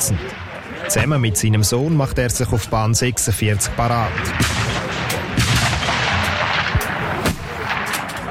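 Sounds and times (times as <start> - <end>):
steady rumble: 0.0 - 8.2
speech: 0.1 - 4.8
rifle shots at outdoor shooting range: 4.1 - 8.2.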